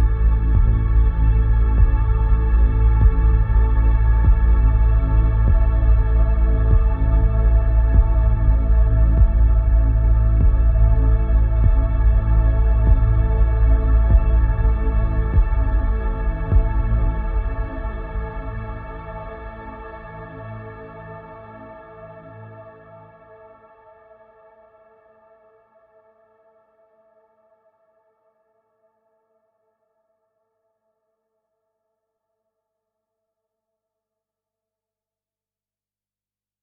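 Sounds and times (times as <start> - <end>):
pulsing drone: 0.0 - 22.4.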